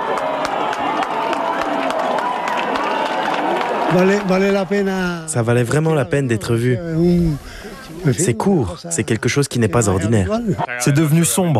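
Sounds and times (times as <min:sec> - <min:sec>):
crowd cheering and shouting during eclipse: 0:00.0 - 0:05.3
speech: 0:03.9 - 0:11.5.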